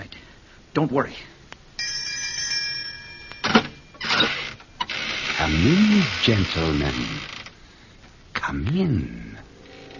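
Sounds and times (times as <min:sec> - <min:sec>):
speech: 0:00.8 - 0:01.3, 0:05.5 - 0:07.3, 0:08.5 - 0:09.4
doorbell ringing: 0:01.8 - 0:04.1.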